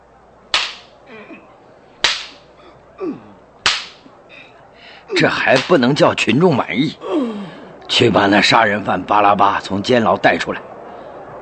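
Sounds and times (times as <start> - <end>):
whip lashes striking a body: 0.5 - 1.0, 2.0 - 2.5, 3.6 - 4.1, 5.5 - 5.8
speech: 3.0 - 3.3, 5.1 - 10.7.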